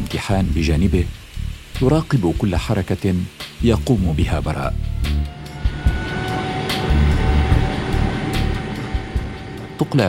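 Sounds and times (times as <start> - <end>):
speech: 0.1 - 1.2, 1.8 - 5.2, 9.8 - 10.0
airplane engine spinning up: 3.8 - 10.0.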